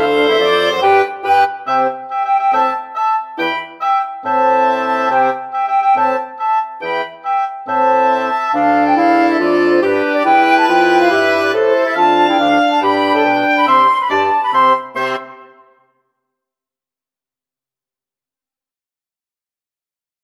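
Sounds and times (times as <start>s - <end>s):
wind quintet: 0.0s - 15.7s.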